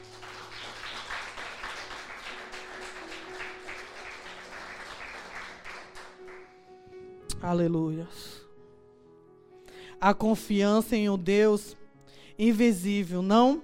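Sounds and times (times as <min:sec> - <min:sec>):
audience applause: 0:00.0 - 0:06.4
speech: 0:07.4 - 0:08.4, 0:10.0 - 0:11.8, 0:12.4 - 0:13.6.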